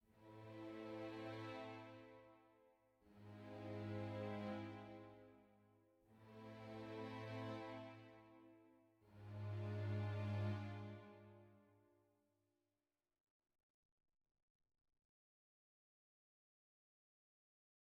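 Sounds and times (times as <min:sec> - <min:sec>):
sad soft music: 0:00.2 - 0:11.6.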